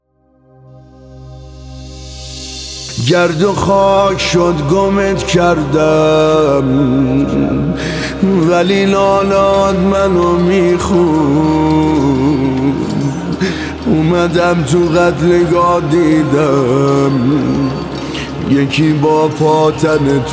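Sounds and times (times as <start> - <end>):
music video song: 0.1 - 20.3.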